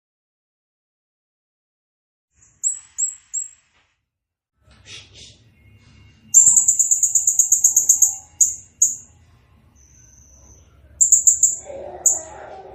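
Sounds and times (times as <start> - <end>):
bird singing: 5.6 - 12.7.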